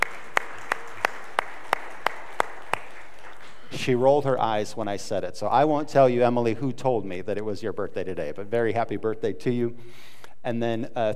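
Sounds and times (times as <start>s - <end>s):
audience clapping rhythmically in unison: 0.0s - 3.8s
speech: 3.8s - 11.1s.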